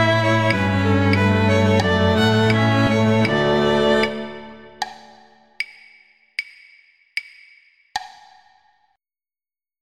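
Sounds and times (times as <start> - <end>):
second violin playing in a quartet: 0.0 - 4.8.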